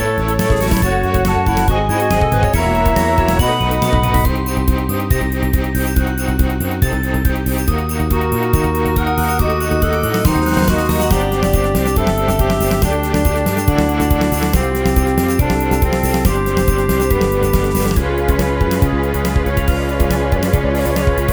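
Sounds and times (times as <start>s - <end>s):
RPG battle music: 0.0s - 6.2s, 7.4s - 21.3s.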